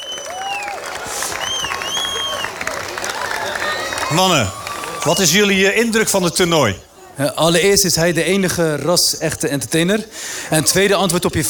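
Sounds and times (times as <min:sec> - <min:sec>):
audience applause: 0:00.0 - 0:06.1
speech: 0:04.1 - 0:11.4.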